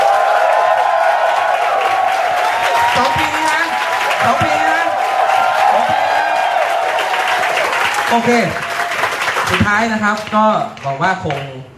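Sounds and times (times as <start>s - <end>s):
audience clapping: 0.0s - 11.6s
speech: 8.1s - 8.7s, 9.5s - 11.7s.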